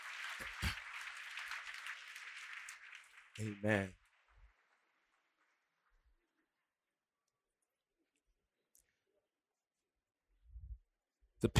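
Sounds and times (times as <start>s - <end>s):
audience hand clapping: 0.0s - 6.2s
speech: 3.4s - 4.0s, 11.4s - 11.5s.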